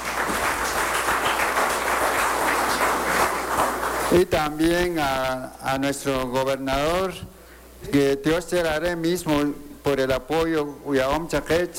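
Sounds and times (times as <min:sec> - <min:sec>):
crowd applause: 0:00.0 - 0:04.3
speech: 0:04.1 - 0:11.7.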